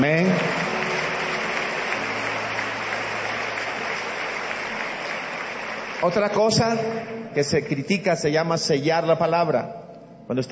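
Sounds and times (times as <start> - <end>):
audience applause: 0.0 - 7.1
speech: 6.0 - 10.5.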